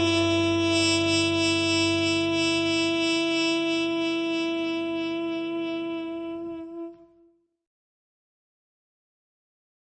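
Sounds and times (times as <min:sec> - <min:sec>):
jazz band: 0:00.0 - 0:07.0.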